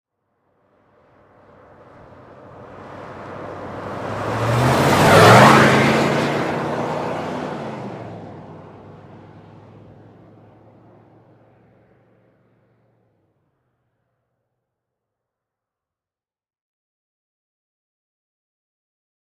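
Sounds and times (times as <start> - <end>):
Ford Expedition driving slowly: 0.7 - 13.6.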